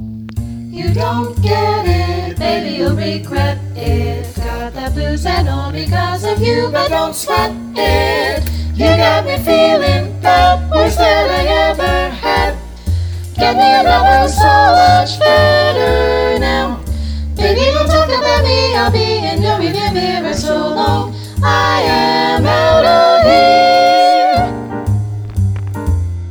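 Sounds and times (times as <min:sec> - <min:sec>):
vocal jazz etude in B flat without bass: 0:00.3 - 0:26.1.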